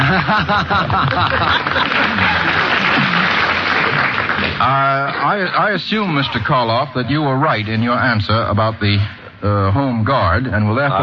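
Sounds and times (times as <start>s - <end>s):
laughter: 0.0s - 3.3s
loud applause: 0.0s - 6.5s
speech: 0.3s - 2.8s, 4.6s - 11.0s.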